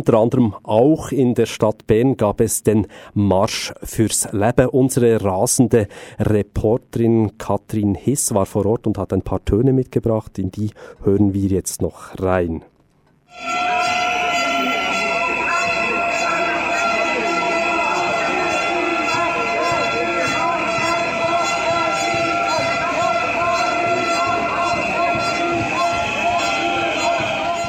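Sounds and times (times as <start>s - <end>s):
speech: 0.0s - 12.7s, 13.3s - 14.0s
protesters whistling at a march: 13.4s - 27.6s.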